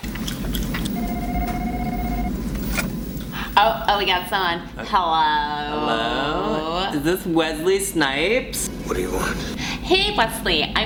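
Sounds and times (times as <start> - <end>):
low rumbling hum: 0.0 - 6.9, 8.6 - 10.8
telephone ringback tone over a call line: 1.0 - 2.5
speech: 3.6 - 10.8.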